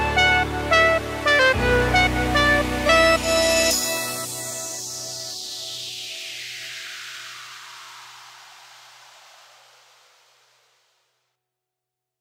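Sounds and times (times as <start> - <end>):
bass remix music: 0.0 - 6.6.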